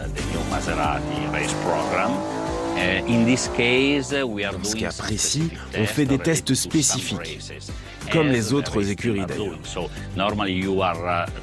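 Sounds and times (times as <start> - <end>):
racing car engine droning on test: 0.0 - 6.2
speech: 0.1 - 11.4.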